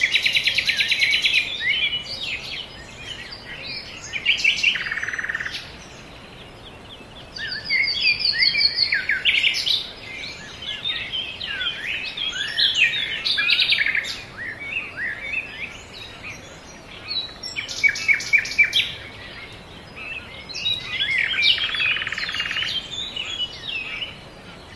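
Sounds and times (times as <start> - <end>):
birds singing in a chorus: 0.0 - 24.7.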